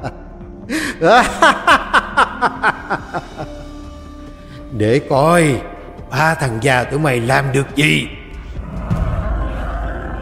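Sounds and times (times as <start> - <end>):
speech: 0.0 - 1.8, 4.7 - 8.2
laughter: 0.8 - 3.7
monster roar: 8.6 - 10.2.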